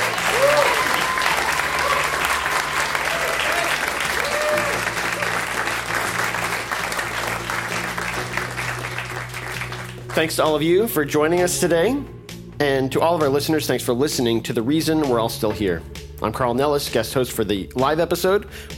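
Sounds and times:
faint voices and cheers: 0.0 - 5.6
audience applause: 0.0 - 10.3
speech: 10.2 - 18.7.

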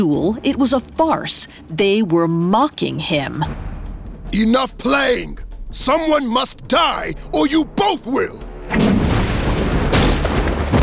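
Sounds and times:
speech: 0.0 - 3.7, 4.3 - 9.0
magical energy blast boom: 8.7 - 10.8.

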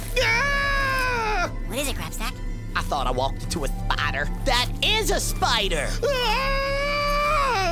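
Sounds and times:
person screaming: 0.1 - 1.7, 5.9 - 7.7
speech: 2.8 - 6.7.

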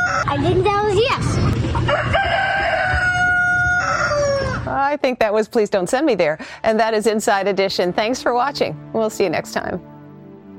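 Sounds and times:
rooster crowing: 0.0 - 0.4, 1.8 - 4.7
speech: 0.3 - 2.4, 4.7 - 9.9.

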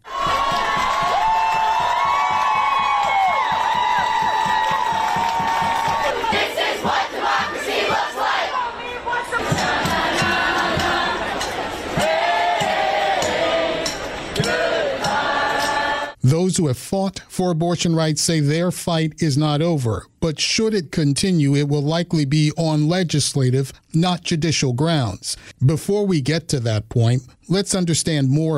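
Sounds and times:
protesters cheering and shouting outside court: 0.0 - 16.2
speech: 16.6 - 28.5.

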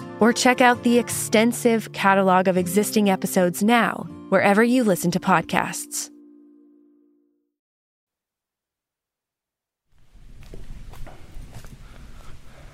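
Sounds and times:
speech: 0.2 - 6.1
footsteps crunching through a dense sugarcane field in the Dominican Republic: 10.0 - 12.4.

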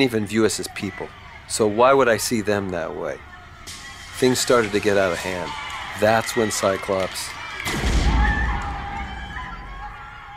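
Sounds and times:
speech: 0.0 - 3.3, 4.2 - 7.8
faint voices murmuring: 0.0 - 10.3
warning gunshot: 7.6 - 9.0.

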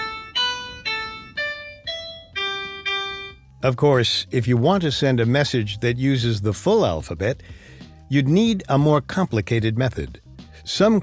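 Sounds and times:
piano playing the notes A, B, A, D, E, G, G: 0.0 - 3.4
speech: 3.6 - 11.0.

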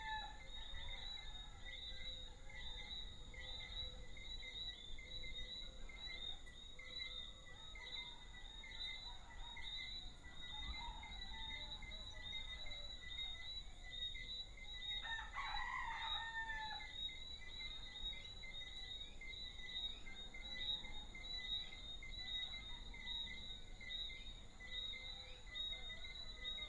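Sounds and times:
rooster crowing hoarsely: 0.0 - 0.5, 15.0 - 16.9
chorus of small frogs chirping: 0.0 - 26.6.

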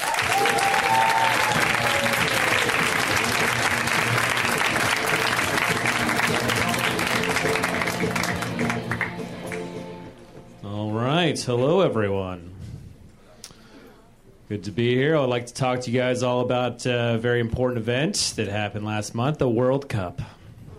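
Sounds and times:
crowd applause welcoming a comedian: 0.0 - 10.2
speech: 11.4 - 12.5, 14.5 - 20.4.

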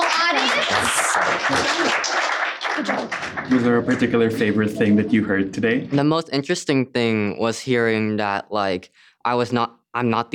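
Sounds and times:
audience applause: 0.0 - 4.7
speech: 0.9 - 2.0, 2.9 - 10.3.

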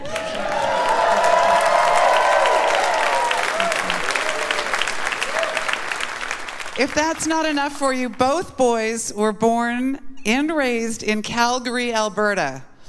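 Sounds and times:
crowd applause: 0.0 - 7.3
speech: 6.8 - 12.7.

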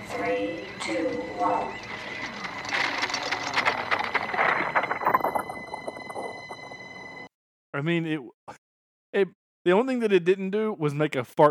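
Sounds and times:
sci-fi transwarp drive rattling mechanical whir: 0.0 - 7.3
steady high-pitched whining tones: 0.0 - 7.3
speech: 0.8 - 1.9, 7.8 - 11.4.

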